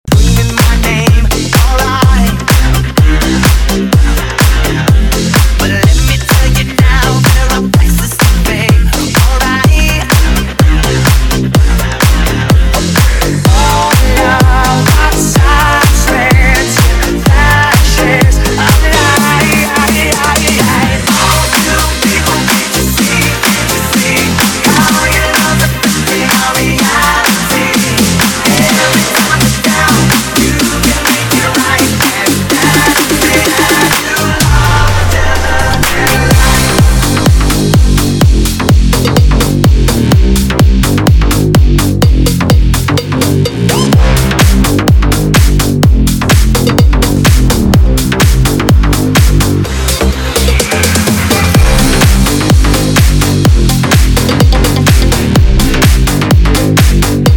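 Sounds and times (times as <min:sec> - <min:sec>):
club party dance music: 0:00.0 - 0:57.3.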